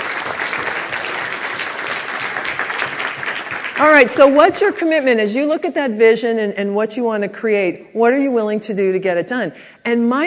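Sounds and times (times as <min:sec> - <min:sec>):
audience applause: 0:00.0 - 0:04.1
speech: 0:03.8 - 0:10.2.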